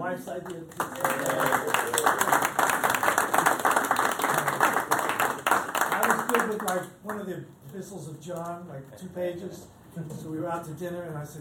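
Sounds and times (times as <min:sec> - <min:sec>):
speech: 0:00.2 - 0:01.7, 0:06.7 - 0:11.3
audience applause: 0:00.7 - 0:06.8.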